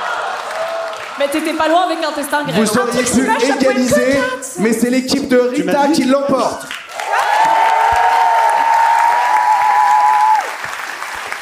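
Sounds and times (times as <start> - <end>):
audience applauding a winning team member at a live quiz event: 0.0 - 2.4, 6.4 - 11.4
speech: 1.2 - 6.8.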